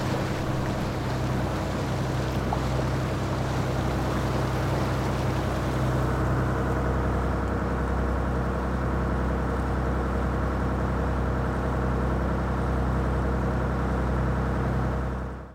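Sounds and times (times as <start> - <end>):
ship engine: 0.0 - 15.5.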